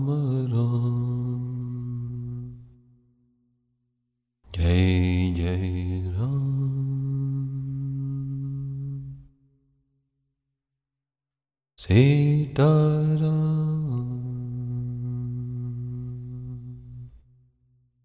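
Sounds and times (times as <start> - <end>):
devotional bhajan: 0.0 - 3.0, 4.5 - 9.3, 11.8 - 17.2.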